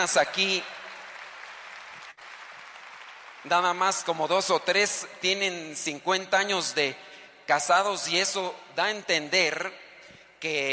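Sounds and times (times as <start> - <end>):
speech: 0.0 - 0.8, 3.4 - 9.8, 10.4 - 10.7
audience applause at a church gathering: 0.7 - 3.8.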